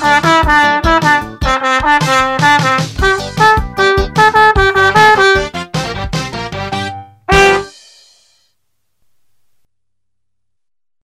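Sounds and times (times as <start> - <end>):
rock and roll music: 0.0 - 8.2.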